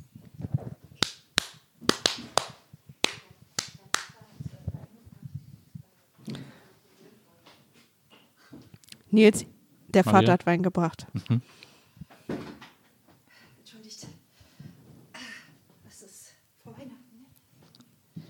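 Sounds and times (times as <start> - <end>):
sharp hand claps: 1.0 - 4.2
speech: 9.1 - 11.7.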